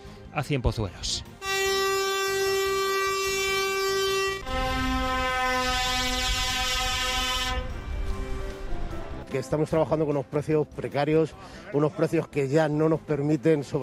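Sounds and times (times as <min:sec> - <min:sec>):
speech: 0:00.4 - 0:01.3, 0:09.3 - 0:13.8
truck air horns at slow truck protest march: 0:01.4 - 0:08.5.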